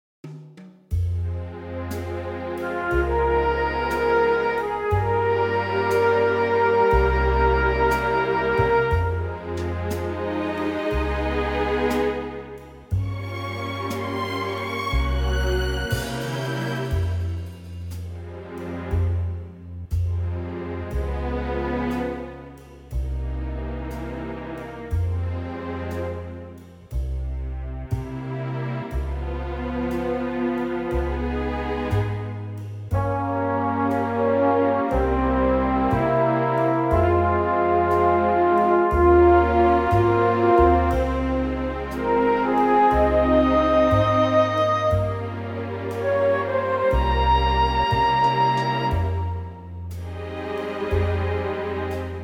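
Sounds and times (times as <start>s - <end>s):
FM orchestral music: 0.9s - 52.2s.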